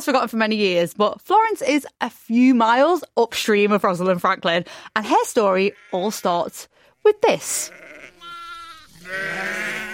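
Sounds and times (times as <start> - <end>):
speech: 0.0 - 8.0, 9.1 - 9.9
sheep bleating: 5.5 - 6.5, 7.1 - 9.9.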